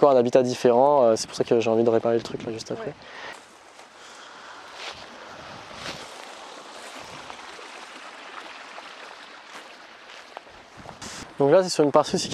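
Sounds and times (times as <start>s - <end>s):
speech: 0.0s - 3.3s, 11.4s - 12.3s
small waterfall cascading in a stream: 3.0s - 12.1s.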